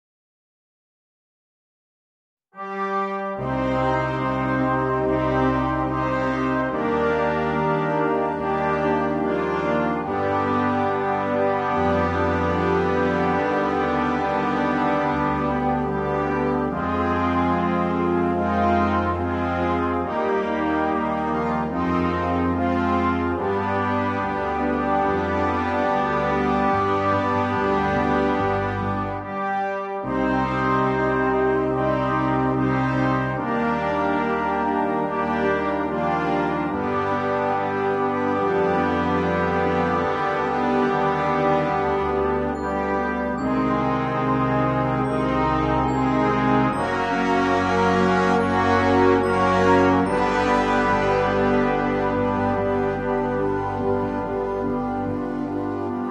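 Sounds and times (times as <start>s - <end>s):
melancholic fanfare: 2.6s - 56.0s.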